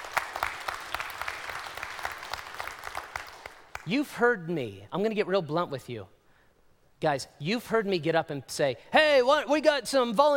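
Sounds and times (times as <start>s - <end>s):
audience applause: 0.0s - 3.8s
speech: 3.9s - 6.2s, 7.0s - 10.3s.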